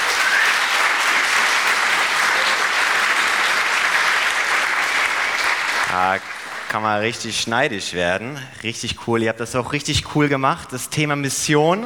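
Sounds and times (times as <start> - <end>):
audience clapping: 0.0 - 7.5
speech: 5.9 - 11.8.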